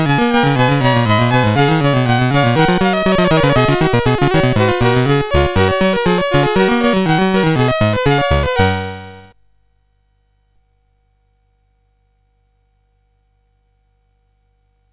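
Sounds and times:
fugue on CSG8580R5 sound chip: 0:00.0 - 0:09.3.

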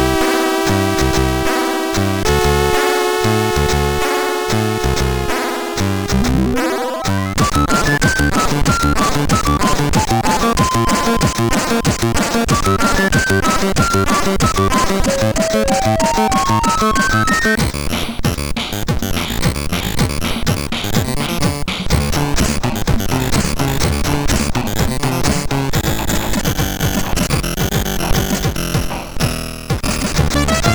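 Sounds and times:
MOS6581 SID sound chip: 0:00.0 - 0:30.7.

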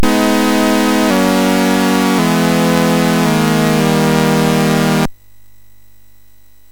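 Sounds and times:
MOS6581R3 chip game music: 0:00.0 - 0:05.1.

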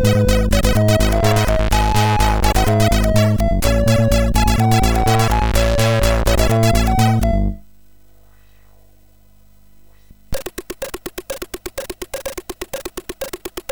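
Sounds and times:
bassy intro tune on MOS6581R4: 0:00.0 - 0:07.6.

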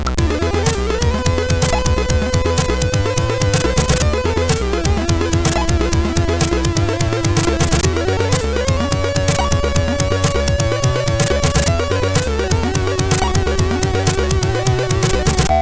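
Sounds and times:
SID CSG8580R5 chip intro music: 0:00.2 - 0:15.5.

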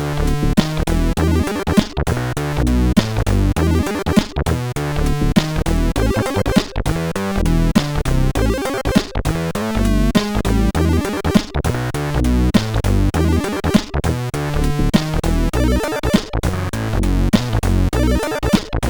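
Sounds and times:
blues music: 0:00.1 - 0:18.8.

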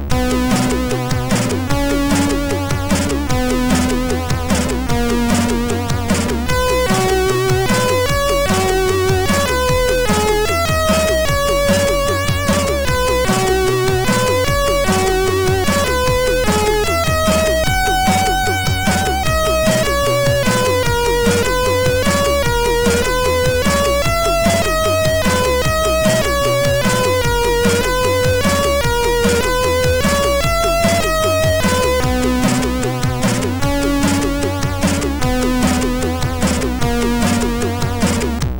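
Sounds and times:
chiptune intro on MOS6581R2 sound chip: 0:00.1 - 0:38.4.

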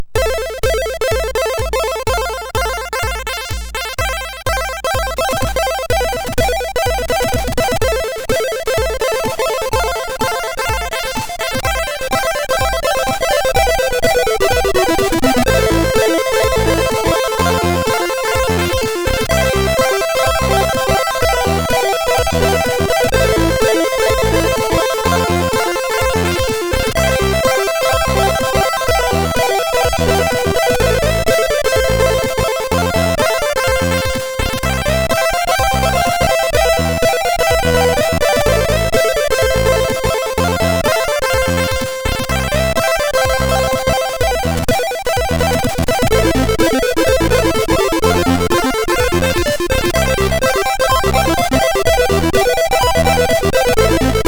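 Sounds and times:
beats tune on a SID MOS6581R4 chip: 0:00.0 - 0:54.2.

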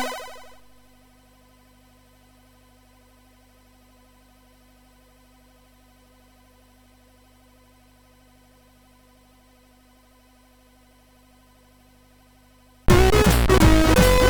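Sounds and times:
jazz on MOS6581R3 sound chip: 0:12.9 - 0:14.2.

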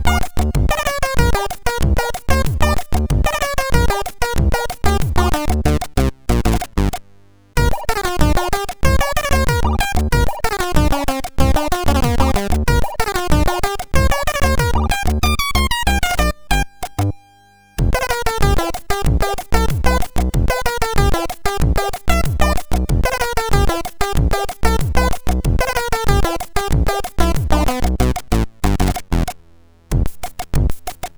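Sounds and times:
jazz music on MOS6581R2 sound chip: 0:00.0 - 0:07.0, 0:07.6 - 0:31.1.

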